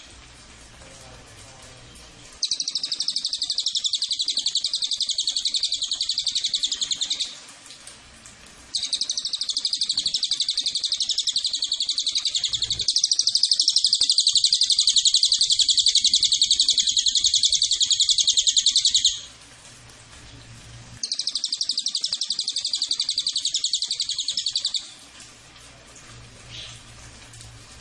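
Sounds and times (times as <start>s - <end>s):
cililin high chattering trill: 2.4s - 7.3s, 8.7s - 19.2s, 21.0s - 24.8s.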